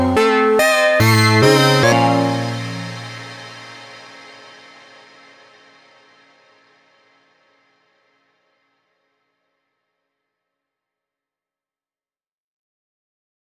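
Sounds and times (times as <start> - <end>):
Sequential Pro 3 paraphonic synthesizer playing Baroque music: 0.0 - 4.3.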